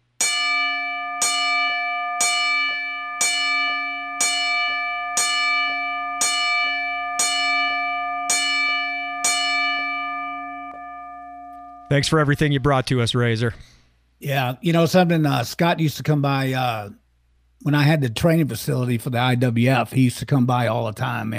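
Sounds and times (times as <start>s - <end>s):
ten-bell salute bell ringing: 0.2s - 12.8s
speech: 11.9s - 17.0s, 17.6s - 21.3s.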